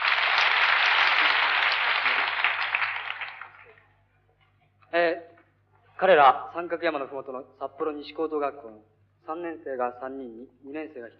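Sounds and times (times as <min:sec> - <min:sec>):
crowd applauding: 0:00.0 - 0:03.8
speech: 0:06.0 - 0:11.1.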